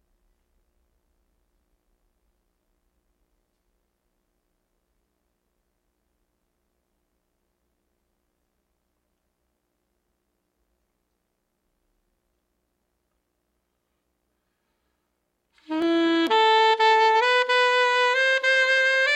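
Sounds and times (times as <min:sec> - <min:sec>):
raw saxophone recording: 0:15.6 - 0:19.1.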